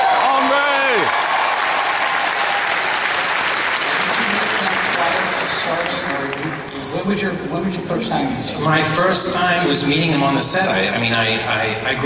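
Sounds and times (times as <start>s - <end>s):
audience applause: 0.0s - 6.7s
speech: 7.1s - 12.0s.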